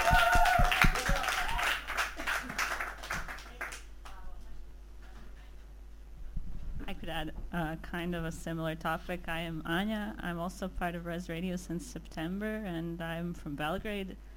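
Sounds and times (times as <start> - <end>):
small group clapping: 0.0 - 4.2
speech: 7.1 - 14.3.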